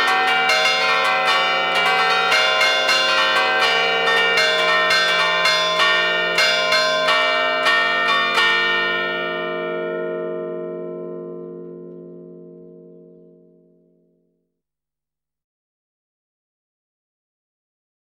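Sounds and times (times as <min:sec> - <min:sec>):
march on five church bells in Castagneta: 0:00.0 - 0:13.7.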